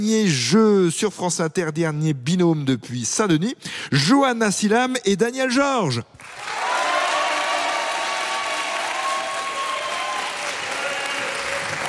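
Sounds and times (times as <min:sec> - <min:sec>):
speech: 0:00.0 - 0:06.6
studio audience applause of a French radio quiz game in Saint-Denis: 0:06.2 - 0:11.8.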